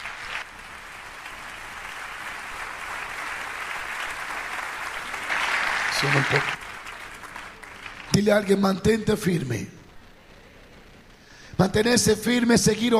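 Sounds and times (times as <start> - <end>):
audience applause: 0.0 - 8.6
speech: 6.0 - 6.6, 8.2 - 9.8, 11.6 - 12.9.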